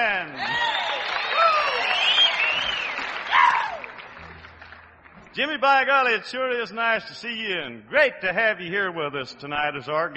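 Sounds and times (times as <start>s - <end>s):
Grand Ole Opry audience round of applause: 0.0s - 5.1s
speech: 5.4s - 10.1s.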